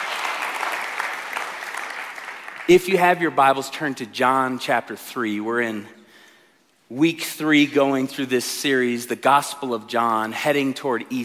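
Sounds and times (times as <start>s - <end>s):
crowd applauding: 0.0s - 2.8s
speech: 2.7s - 6.0s, 6.9s - 11.2s.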